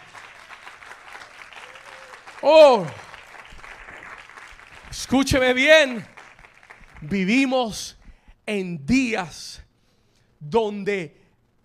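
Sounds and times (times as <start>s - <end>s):
audience applause: 0.0s - 7.2s
speech: 2.4s - 3.0s, 5.0s - 6.1s, 7.0s - 9.6s, 10.4s - 11.2s.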